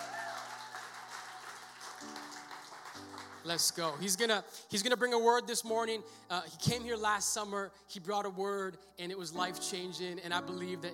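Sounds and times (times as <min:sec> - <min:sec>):
audience clapping hands: 0:00.0 - 0:04.2
speech: 0:03.4 - 0:10.9.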